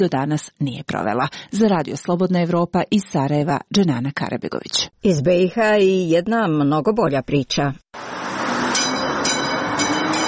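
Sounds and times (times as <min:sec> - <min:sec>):
speech: 0:00.0 - 0:08.2
replica of Sarajevo's first electric tram from 1895 rolling on city rails: 0:08.0 - 0:10.2.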